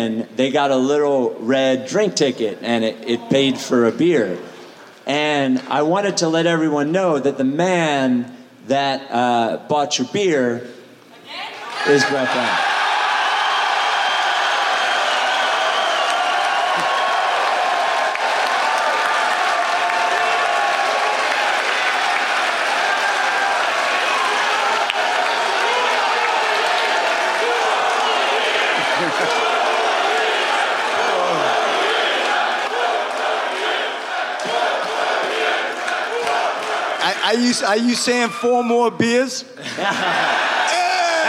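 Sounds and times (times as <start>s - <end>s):
speech: 0.0s - 12.7s, 37.4s - 41.2s
big arena crowd applauding and cheering: 11.6s - 38.3s
scattered shouts: 16.6s - 37.3s
laughter: 28.5s - 30.0s, 39.6s - 41.2s.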